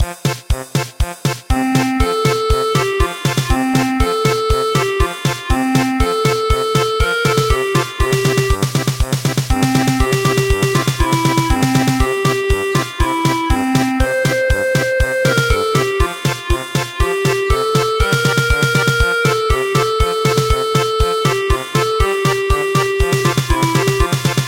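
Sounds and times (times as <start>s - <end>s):
German polka music: 0.1s - 24.4s.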